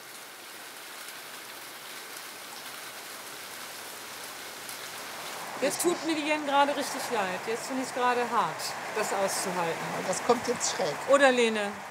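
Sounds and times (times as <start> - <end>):
rain falling: 0.0 - 11.8
speech: 5.6 - 11.8.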